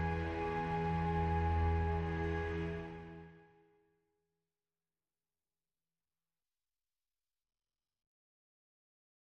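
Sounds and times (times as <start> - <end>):
low strings: 0.0 - 3.3.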